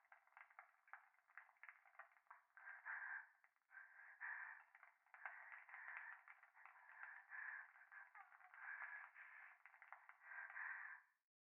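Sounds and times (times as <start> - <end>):
bath water: 0.0 - 10.9
fireplace: 0.0 - 11.2
breathing close against the left ear: 2.6 - 11.1.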